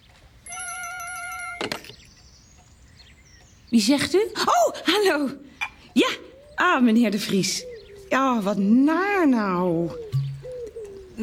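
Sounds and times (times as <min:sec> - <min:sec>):
telephone ringing: 0:00.4 - 0:02.1
telephone receiver picked up: 0:00.5 - 0:02.0
speech: 0:01.6 - 0:02.0, 0:03.7 - 0:05.4, 0:06.0 - 0:10.2.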